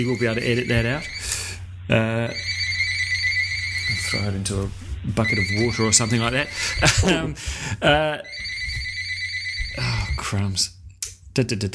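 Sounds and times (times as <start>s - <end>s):
speech: 0.0s - 1.3s, 1.9s - 2.5s, 3.9s - 8.3s, 9.8s - 10.8s, 11.4s - 11.7s
phone electronic ringtone: 0.0s - 1.4s, 2.3s - 4.3s, 5.2s - 7.1s, 8.2s - 10.2s
low hum: 0.0s - 11.7s.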